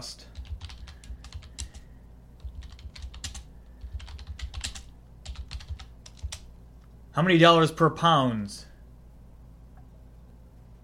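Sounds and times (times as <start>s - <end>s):
speech: 0.0s - 0.3s, 7.2s - 8.7s
typing on a computer keyboard: 0.3s - 6.5s.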